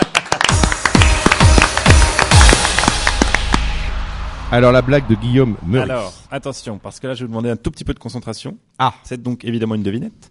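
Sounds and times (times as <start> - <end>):
person clapping: 0.0 - 3.8
speech: 4.5 - 10.2.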